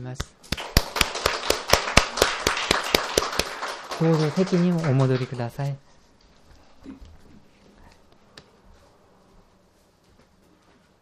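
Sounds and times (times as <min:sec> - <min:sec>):
speech: 0:00.0 - 0:00.7, 0:04.0 - 0:05.9, 0:06.8 - 0:07.1
applause from a gathering: 0:00.5 - 0:05.8.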